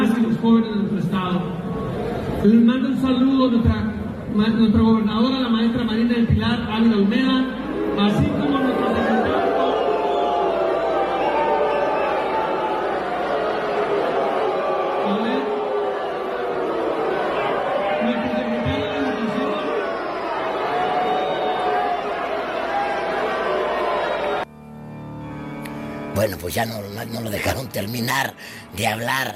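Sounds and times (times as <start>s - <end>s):
speech: 0.4s - 1.6s, 2.4s - 8.8s, 26.3s - 29.3s
crowd booing: 7.6s - 24.5s.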